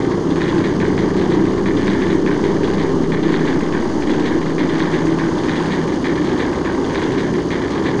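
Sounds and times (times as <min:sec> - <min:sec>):
ambient drone: 0:00.0 - 0:07.9.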